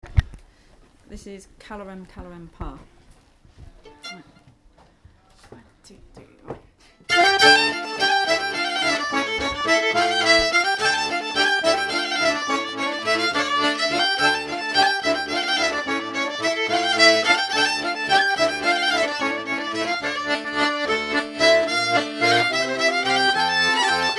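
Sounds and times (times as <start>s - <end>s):
bourree dance music: 7.1s - 24.1s.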